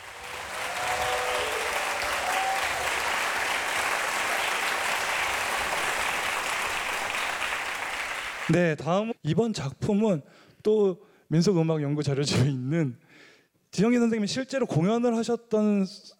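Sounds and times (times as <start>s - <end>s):
audience applause: 0.0s - 8.6s
speech: 8.5s - 16.1s.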